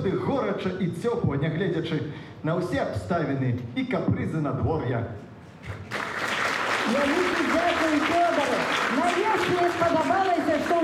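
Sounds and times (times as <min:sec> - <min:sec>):
speech: 0:00.6 - 0:05.8, 0:06.9 - 0:10.8
audience applause: 0:05.8 - 0:10.8.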